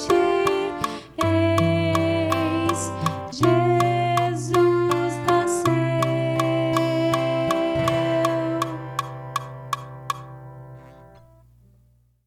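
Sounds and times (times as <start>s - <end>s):
contralto voice singing: 0.0s - 9.3s.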